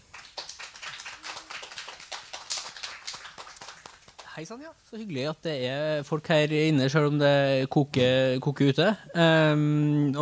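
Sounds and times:
room full of people applauding: 0.0 - 4.4
speech: 4.4 - 10.2.

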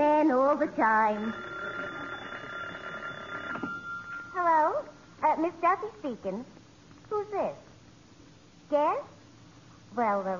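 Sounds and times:
speech: 0.6 - 1.5, 4.4 - 7.7, 8.7 - 9.1, 9.9 - 10.3
telephone ringing with a shrill bell-like jangle: 0.9 - 5.0.

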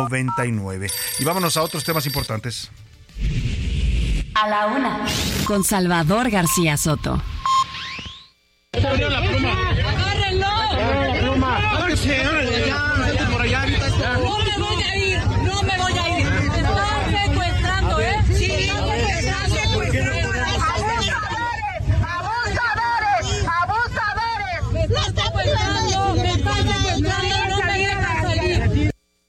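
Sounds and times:
speech: 0.0 - 3.5, 4.4 - 7.3
crowd shouting during a market brawl: 8.8 - 28.6.

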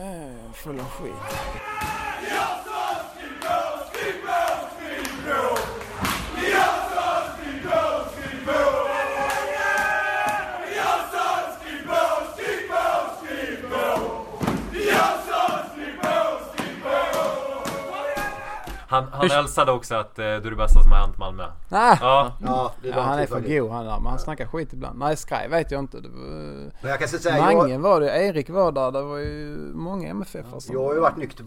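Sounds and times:
speech: 0.6 - 2.7, 19.0 - 31.4
large crowd of football supporters chanting a sung refrain: 0.7 - 18.9
football supporters shouting: 1.2 - 18.9.

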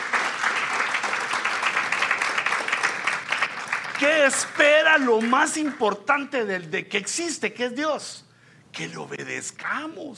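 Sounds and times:
audience clapping hands: 0.0 - 6.2
speech: 4.0 - 10.1.

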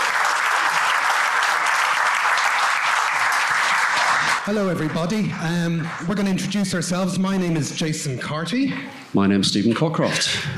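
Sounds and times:
live audience applause: 0.0 - 7.0
speech: 4.5 - 10.5.

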